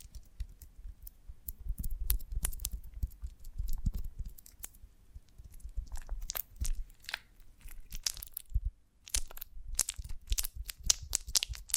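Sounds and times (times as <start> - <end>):
honeycomb on a branch crunching: 0.0 - 11.7.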